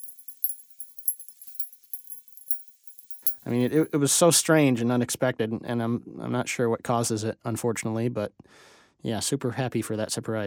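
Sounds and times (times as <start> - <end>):
cooling tin tinging after dry ice: 0.0 - 4.0
speech: 3.4 - 10.4.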